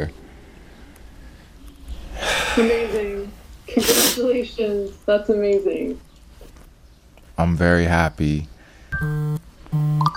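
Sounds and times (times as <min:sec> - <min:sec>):
speech: 0:00.0 - 0:00.2, 0:02.6 - 0:06.1, 0:07.4 - 0:10.1
phone notification beeps: 0:09.0 - 0:10.1.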